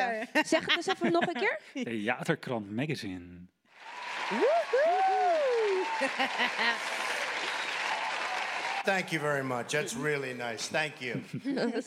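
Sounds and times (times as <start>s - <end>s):
speech: 0.0s - 5.0s, 6.0s - 7.0s, 8.8s - 11.8s
laughter: 0.1s - 1.6s, 5.8s - 7.4s, 9.7s - 11.8s
applause: 3.7s - 10.4s.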